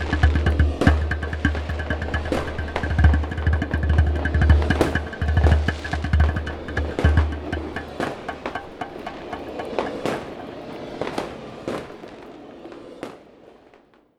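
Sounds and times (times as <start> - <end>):
djembe drumming: 0.0 - 10.4
fireworks: 8.0 - 14.1.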